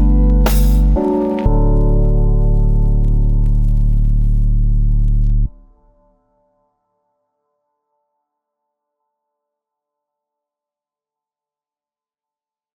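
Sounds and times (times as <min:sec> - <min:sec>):
lofi music: 0:00.0 - 0:05.9.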